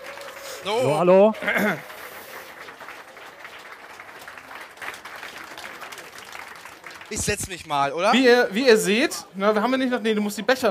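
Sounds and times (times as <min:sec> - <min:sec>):
audience clapping: 0:00.0 - 0:08.1
speech: 0:00.6 - 0:01.9, 0:07.1 - 0:10.6.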